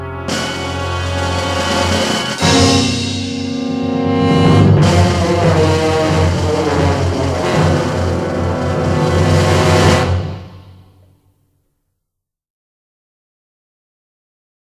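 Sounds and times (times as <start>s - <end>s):
musical theme: 0.0s - 11.2s.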